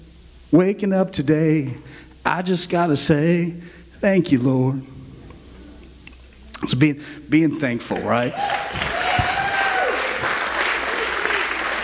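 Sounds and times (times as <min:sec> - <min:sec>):
speech: 0:00.5 - 0:04.9, 0:06.6 - 0:08.9
audience applause: 0:07.8 - 0:11.8.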